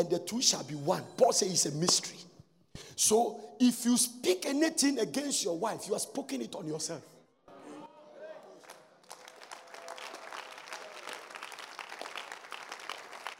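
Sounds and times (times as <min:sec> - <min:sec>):
speech: 0:00.0 - 0:07.1
audience clapping: 0:08.6 - 0:13.3.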